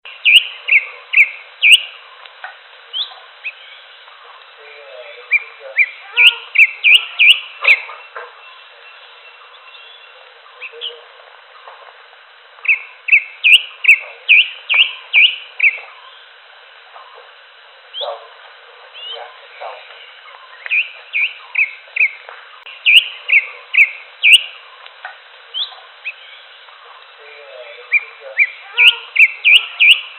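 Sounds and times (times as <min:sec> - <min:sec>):
greater green leafbird singing varied whistles: 0:00.2 - 0:01.9, 0:05.3 - 0:07.9, 0:12.7 - 0:15.8, 0:20.5 - 0:22.2, 0:22.8 - 0:24.6, 0:27.9 - 0:30.1.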